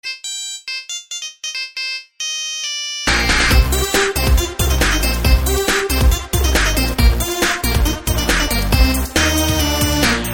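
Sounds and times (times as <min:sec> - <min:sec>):
rave music: 0:03.1 - 0:10.3.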